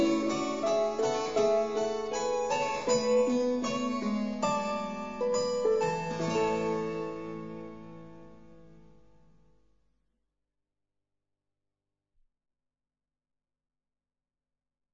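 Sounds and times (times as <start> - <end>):
short musical interlude: 0.0 - 8.8.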